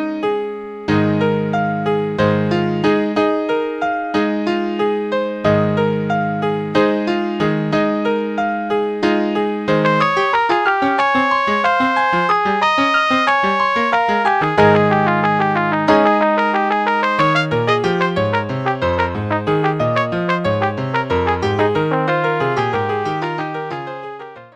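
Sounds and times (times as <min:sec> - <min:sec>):
piano playing a duet in A-flat: 0:00.0 - 0:24.5
flugelhorn playing a duet in A-flat: 0:09.9 - 0:24.0.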